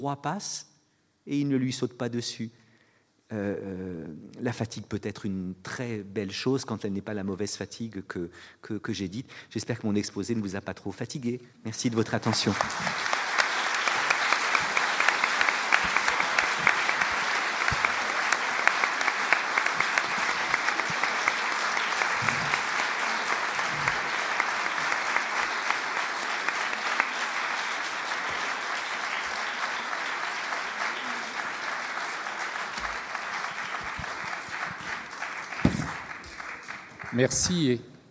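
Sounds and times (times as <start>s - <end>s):
speech: 0.0s - 0.7s, 1.3s - 2.6s, 3.3s - 13.1s, 37.2s - 37.9s
large audience applause after a lecture: 12.2s - 37.6s.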